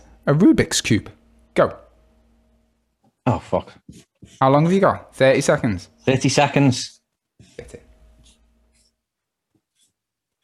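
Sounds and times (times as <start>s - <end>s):
speech: 0.2s - 1.8s, 3.2s - 7.9s
pencil scratching on paper while drawing: 7.4s - 9.0s, 9.6s - 10.4s.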